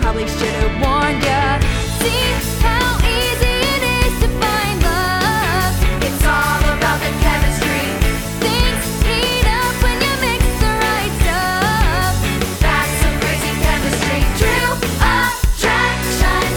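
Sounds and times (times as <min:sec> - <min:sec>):
guide vocals: 0:00.1 - 0:16.5.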